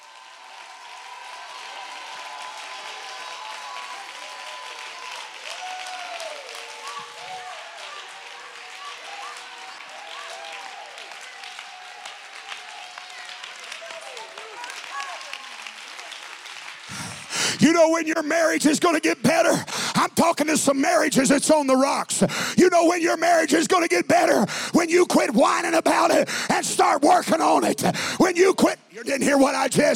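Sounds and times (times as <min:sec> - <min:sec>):
audience clapping: 0:00.0 - 0:19.9
speech: 0:17.6 - 0:29.9.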